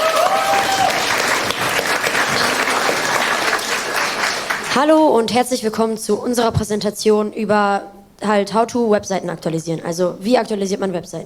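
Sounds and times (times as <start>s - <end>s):
audience applause: 0.0s - 4.8s
speech: 4.8s - 11.2s.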